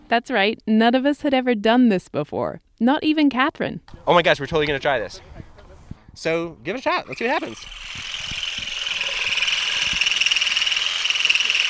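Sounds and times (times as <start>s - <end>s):
speech: 0.1s - 5.4s, 6.2s - 8.2s
vibrating olive harvesting rake buzzing: 7.0s - 11.6s.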